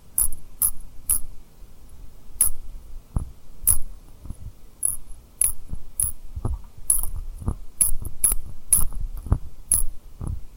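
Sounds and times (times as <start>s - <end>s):
tapping and rubbing rhinestone lip triggers: 0.2s - 1.3s, 3.2s - 10.4s.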